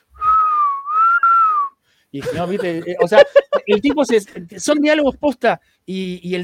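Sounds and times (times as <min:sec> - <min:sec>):
person whistling imitating a character: 0:00.1 - 0:01.8
speech: 0:02.1 - 0:06.4
laughter: 0:02.2 - 0:04.6.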